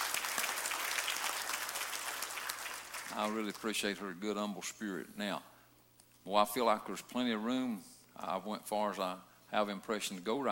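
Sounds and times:
audience applause: 0.0 - 3.6
speech: 3.1 - 5.5, 6.2 - 10.5.

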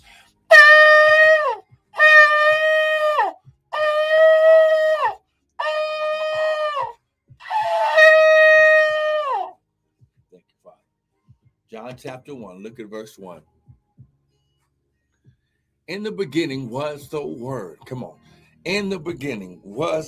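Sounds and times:
shofar being blown: 0.5 - 9.6
speech: 11.9 - 13.5, 15.9 - 20.0.

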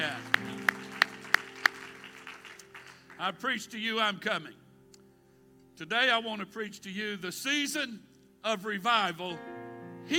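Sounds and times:
audience clapping hands: 0.0 - 3.3
speech: 3.2 - 4.6, 5.8 - 10.1.

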